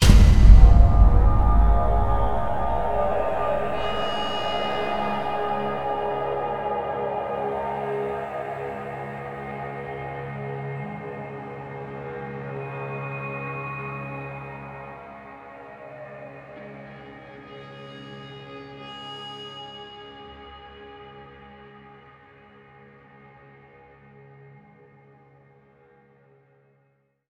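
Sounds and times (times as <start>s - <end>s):
start music stinger: 0.0s - 9.8s.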